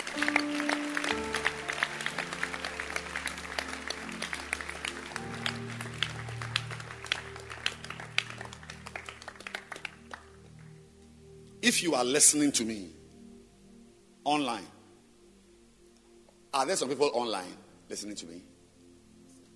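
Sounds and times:
crowd applauding: 0.0 - 10.7
speech: 11.7 - 13.0, 16.6 - 18.6.

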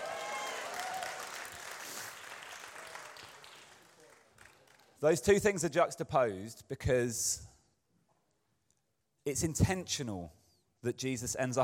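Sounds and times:
whoops: 0.0 - 1.8
audience applause: 0.0 - 5.0
speech: 5.0 - 7.5, 9.3 - 11.6.

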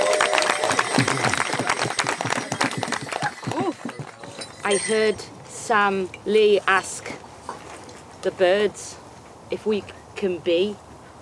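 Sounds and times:
audience cheering: 0.0 - 4.4
speech: 1.0 - 1.4, 4.7 - 7.2, 8.2 - 10.8.

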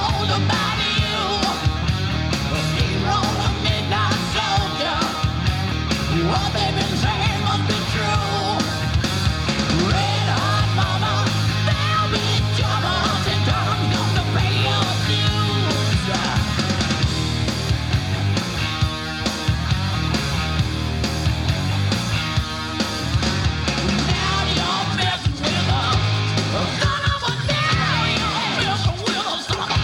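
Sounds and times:
raspy shouted vocals: 0.0 - 5.5, 9.7 - 16.9, 24.0 - 29.8
distorted guitar hook: 0.0 - 29.8
driving bass and drums: 0.0 - 29.8
hard rock cover song with guitar hook: 0.0 - 29.8.

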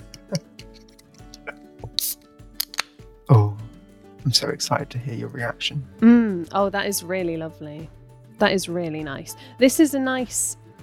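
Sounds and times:
faint clicks and handling sounds: 0.1 - 3.0
can of pale ale beer cracking open: 0.2 - 3.0
speech: 4.3 - 10.6.

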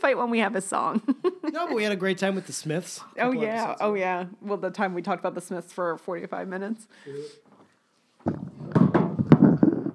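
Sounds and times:
speech: 0.0 - 7.4
microphone being knocked over: 8.2 - 9.9.

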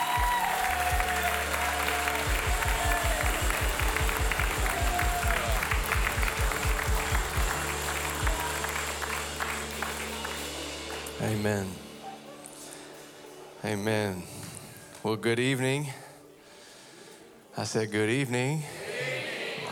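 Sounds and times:
rhythmic low thumping: 0.0 - 11.2
audience round of applause: 0.0 - 11.4
speech: 11.4 - 11.8, 13.6 - 14.3, 15.0 - 16.0, 17.6 - 18.8.

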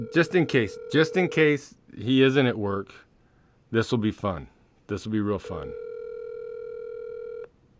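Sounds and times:
phone line tone on a call: 0.0 - 1.5, 5.7 - 7.5
speech: 0.0 - 3.0, 3.7 - 5.8
faint hiss: 0.0 - 5.8.

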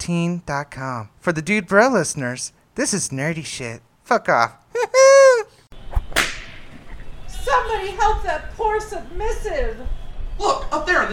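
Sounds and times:
speech: 0.0 - 5.0, 8.2 - 11.1
flogger whip crack: 5.9 - 6.8.

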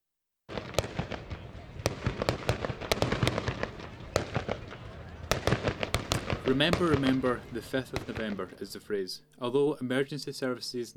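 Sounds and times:
fireworks exploding: 0.5 - 9.0
speech: 6.5 - 10.9.

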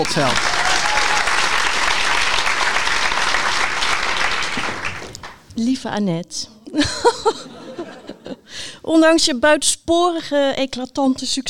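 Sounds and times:
speech: 0.0 - 0.5, 5.6 - 8.0, 8.8 - 11.4
applause: 0.0 - 5.4
laughter: 6.8 - 8.5.

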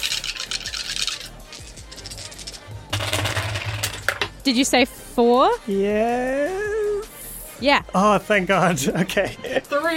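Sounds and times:
dice rattling and clattering across a hard surface: 0.0 - 4.3
speech: 4.4 - 6.7, 7.6 - 9.9.

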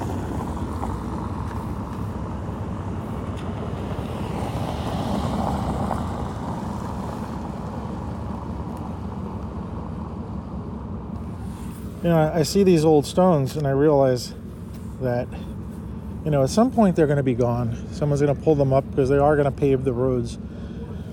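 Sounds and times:
cars passing by on the road: 0.0 - 21.1
speech: 12.0 - 14.4, 15.0 - 15.5, 16.2 - 20.4.

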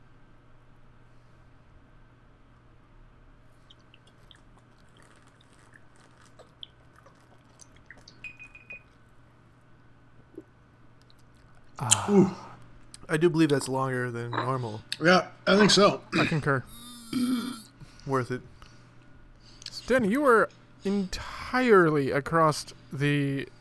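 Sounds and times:
lip smacks: 3.6 - 9.4, 10.2 - 13.6
people drinking from bottles: 3.6 - 9.5, 10.2 - 18.8, 19.5 - 22.0
speech: 11.8 - 12.4, 13.1 - 18.5, 19.9 - 23.5.

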